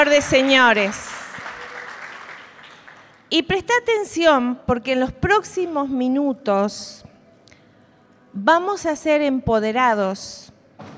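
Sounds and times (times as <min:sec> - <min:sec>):
speech: 0:00.0 - 0:01.2, 0:03.3 - 0:07.0, 0:08.4 - 0:10.9
audience applauding: 0:00.0 - 0:03.2.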